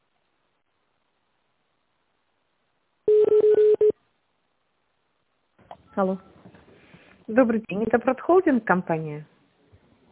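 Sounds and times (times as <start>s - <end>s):
telephone touch-tone dialing: 3.1s - 3.9s
speech: 6.0s - 6.4s, 7.3s - 9.3s.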